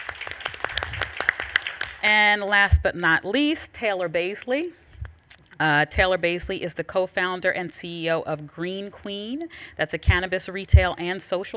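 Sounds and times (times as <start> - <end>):
audience applause: 0.0 - 2.0
speech: 2.0 - 4.8, 5.6 - 11.5.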